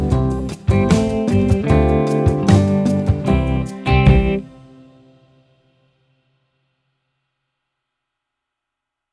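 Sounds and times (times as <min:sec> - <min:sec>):
calypso jazz backing track: 0:00.0 - 0:05.0.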